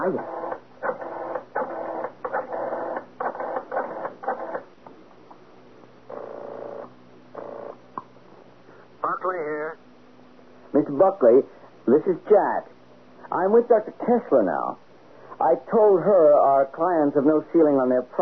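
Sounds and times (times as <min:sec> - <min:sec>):
speech: 0:00.0 - 0:00.4, 0:10.8 - 0:18.1
telephone number being dialled, radio drama sound effect: 0:00.0 - 0:04.7, 0:06.1 - 0:07.8.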